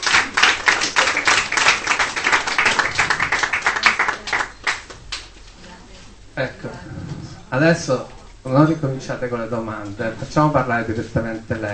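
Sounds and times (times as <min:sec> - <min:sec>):
audience applause: 0:00.0 - 0:05.2
speech: 0:06.4 - 0:11.7.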